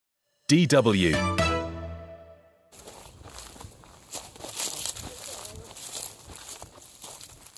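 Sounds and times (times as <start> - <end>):
speech: 0.5 - 1.3
footsteps on dry rustling leaves: 2.7 - 7.5.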